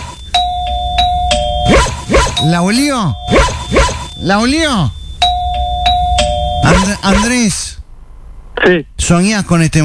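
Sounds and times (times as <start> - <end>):
doorbell ringing ding-dong: 0.2 - 7.4
speech: 2.4 - 5.0, 6.6 - 7.8, 8.6 - 9.8.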